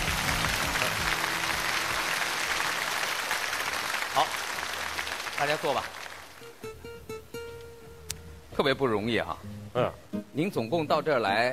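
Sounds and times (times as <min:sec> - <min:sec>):
audience applause: 0:00.0 - 0:06.6
speech: 0:04.2 - 0:04.4, 0:05.4 - 0:06.0, 0:08.6 - 0:11.5.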